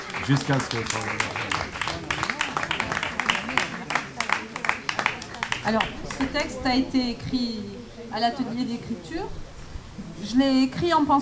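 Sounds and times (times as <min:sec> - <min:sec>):
audience applause: 0:00.0 - 0:06.6
speech: 0:00.3 - 0:01.3, 0:05.6 - 0:09.4, 0:10.2 - 0:11.2.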